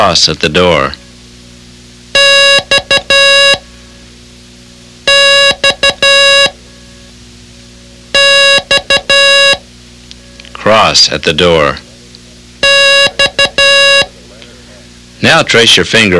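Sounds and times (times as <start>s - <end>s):
speech: 0.0s - 1.0s, 10.6s - 11.9s, 15.2s - 16.1s
buzzy electronic tone beeping Morse code for the letter X: 2.2s - 3.6s, 5.1s - 7.1s, 8.2s - 9.6s, 12.6s - 14.1s.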